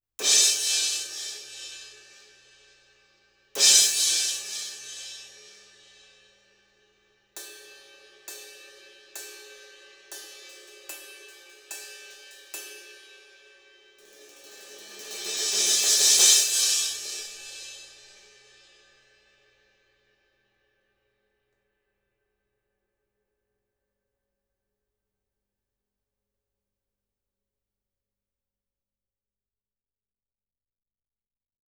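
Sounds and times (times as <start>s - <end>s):
crash cymbal: 0.2s - 6.4s, 7.4s - 19.5s.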